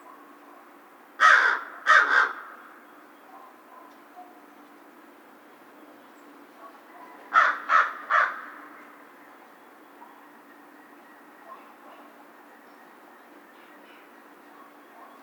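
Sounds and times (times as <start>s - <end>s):
American crow cawing: 1.2s - 2.8s, 7.3s - 8.7s.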